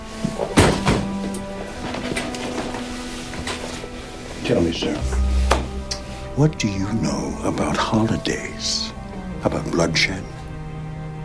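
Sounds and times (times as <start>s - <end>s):
chair set down on a hard floor: 0.3s - 3.8s
speech: 4.5s - 5.2s, 6.4s - 10.4s.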